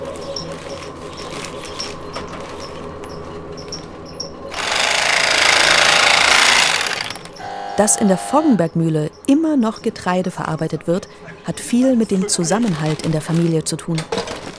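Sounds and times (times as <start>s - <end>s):
sewing machine stitching a flour sack shut: 4.5s - 7.4s
speech: 7.8s - 14.4s.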